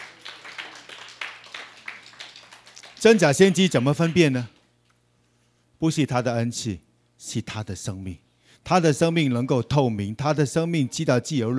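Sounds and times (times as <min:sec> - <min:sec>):
audience applauding: 0:00.0 - 0:04.5
speech: 0:03.0 - 0:04.6, 0:05.8 - 0:11.5.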